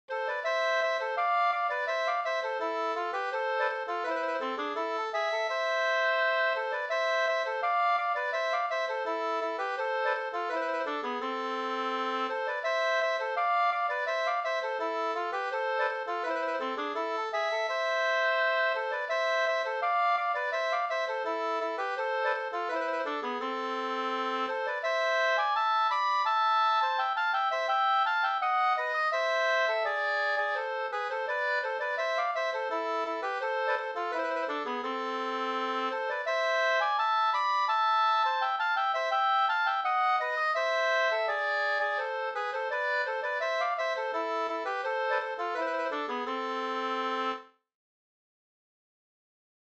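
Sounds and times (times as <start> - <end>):
folk walking tune: 0.1 - 47.6.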